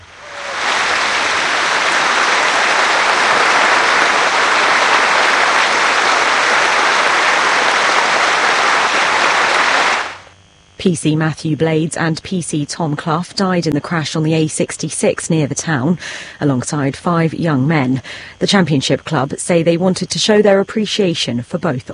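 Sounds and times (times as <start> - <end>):
stadium crowd applauding: 0.0 - 10.3
speech: 10.8 - 21.9.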